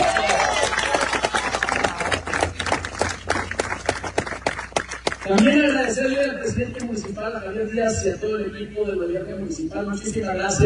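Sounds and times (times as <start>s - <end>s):
audience applause: 0.0s - 5.3s
speech: 5.3s - 10.6s.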